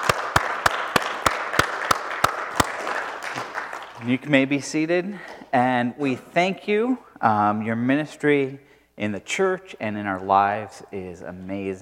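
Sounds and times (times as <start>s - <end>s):
audience applauding mothers: 0.0s - 4.2s
speech: 4.0s - 11.8s.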